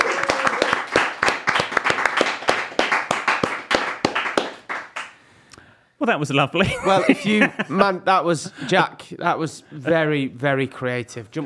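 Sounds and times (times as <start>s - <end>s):
round of applause: 0.0s - 5.2s
speech: 6.1s - 11.4s
laughter: 6.6s - 8.6s.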